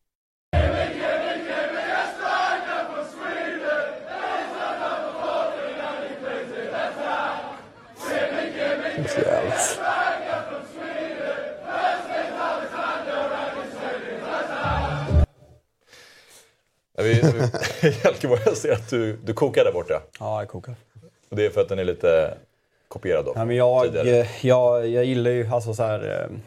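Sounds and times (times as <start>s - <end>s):
football supporters singing a chant: 0.6s - 15.3s
laughter: 17.0s - 19.1s
speech: 17.4s - 26.4s.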